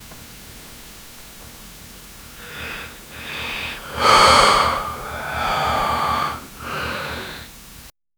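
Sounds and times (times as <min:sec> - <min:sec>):
person waking up in bed: 0:02.0 - 0:07.5.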